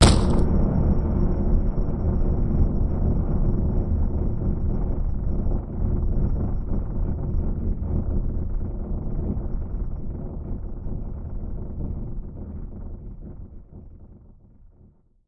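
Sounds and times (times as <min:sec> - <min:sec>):
hard impact: 0:00.0 - 0:00.5
rumble: 0:00.0 - 0:15.0.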